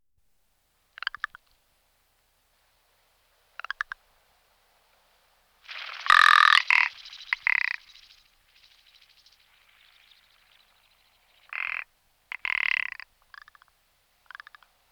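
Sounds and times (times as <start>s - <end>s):
rock ptarmigan rattling call: 5.7s - 13.6s.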